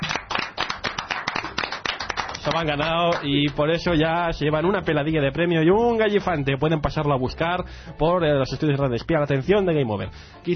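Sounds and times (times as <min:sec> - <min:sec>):
applause: 0:00.0 - 0:03.8
speech: 0:02.4 - 0:10.5.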